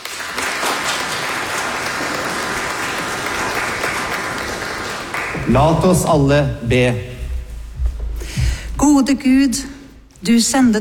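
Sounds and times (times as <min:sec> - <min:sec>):
church congregation clapping at a Pentecost service: 0:00.0 - 0:06.9
speech: 0:05.5 - 0:07.1, 0:09.0 - 0:10.7.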